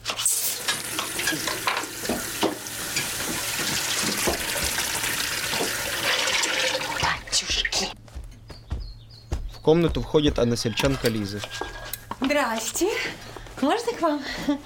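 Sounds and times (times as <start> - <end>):
water gushing from washbasin tap: 0.0 - 7.8
speech: 9.6 - 14.6.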